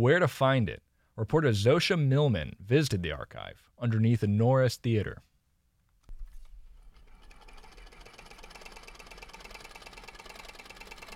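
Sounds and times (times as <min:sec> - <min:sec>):
speech: 0:00.0 - 0:05.3
Bell & Howell film camera running: 0:06.7 - 0:11.1.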